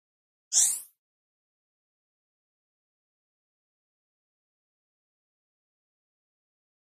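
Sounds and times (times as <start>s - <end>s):
high electronic button zip: 0.5s - 0.9s.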